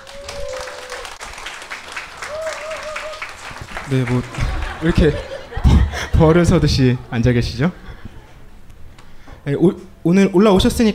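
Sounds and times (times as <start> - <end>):
audience applause welcoming guests: 0.0 - 5.5
speech: 3.9 - 5.3, 5.9 - 7.8, 9.5 - 10.9
laughter: 3.9 - 7.1.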